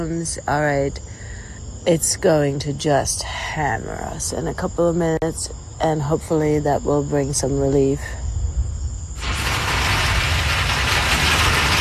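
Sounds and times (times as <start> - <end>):
speech: 0.0 - 1.2, 1.8 - 8.2
heavy rain pouring down: 9.2 - 11.8.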